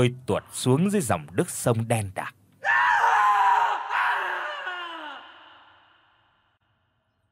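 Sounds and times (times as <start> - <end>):
speech: 0.0 - 2.4
man's agonized scream: 2.6 - 6.0.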